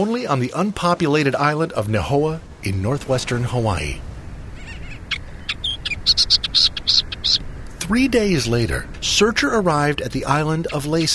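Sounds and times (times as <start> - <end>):
speech: 0.0 - 4.1, 7.9 - 11.1
low hiss: 0.0 - 11.1
Millerbird warbler song: 3.3 - 11.1.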